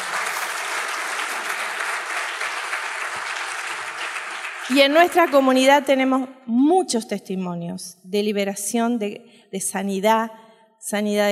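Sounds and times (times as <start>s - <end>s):
audience applause: 0.0s - 5.6s
speech: 4.7s - 11.2s.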